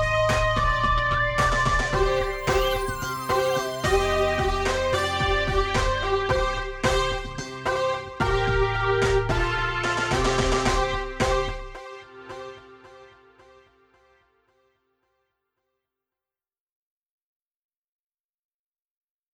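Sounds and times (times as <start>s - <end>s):
MIDI music mix: 0.0s - 14.1s.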